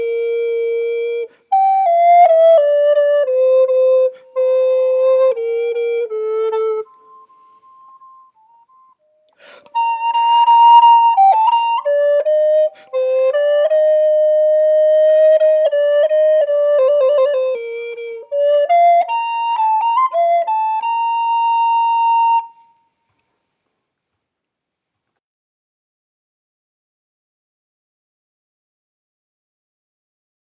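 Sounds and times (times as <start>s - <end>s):
first voice of a baroque duet, affettuoso: 0.0s - 22.8s.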